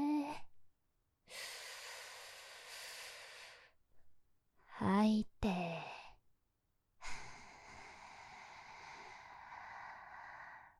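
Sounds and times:
deep inhale during breathing exercise with both arms raised: 1.3s - 3.8s, 7.0s - 10.7s
speech: 4.8s - 5.9s.

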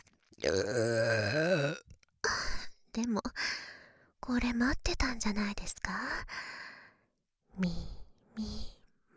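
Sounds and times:
speech: 0.4s - 1.8s, 3.0s - 6.7s, 7.6s - 8.6s
voiced burping beside the ear: 0.5s - 1.8s.

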